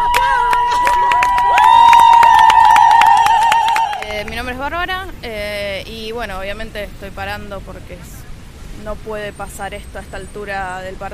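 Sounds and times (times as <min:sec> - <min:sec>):
protest crowd clapping: 0:00.0 - 0:04.4
speech: 0:06.2 - 0:08.2, 0:08.8 - 0:11.1.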